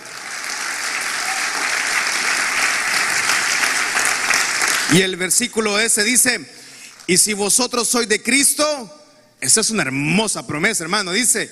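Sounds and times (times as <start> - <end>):
audience applause: 0.0 - 5.0
speech: 4.9 - 11.4.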